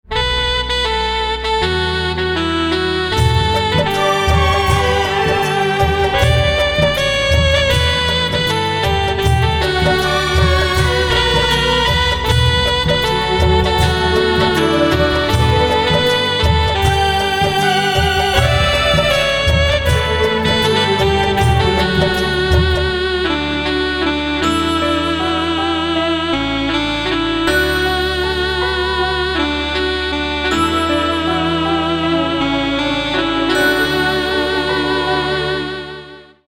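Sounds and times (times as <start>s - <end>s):
saxophone: 0.0s - 36.4s.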